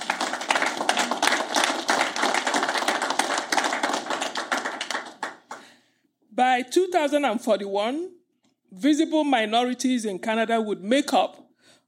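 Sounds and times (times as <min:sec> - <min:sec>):
audience applause: 0:00.0 - 0:05.6
speech: 0:06.4 - 0:11.4.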